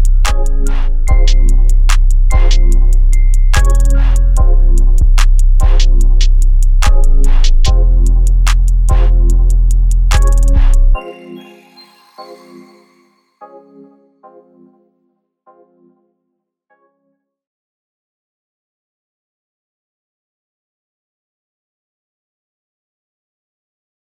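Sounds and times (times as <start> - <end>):
instrumental music: 0.0 - 17.0.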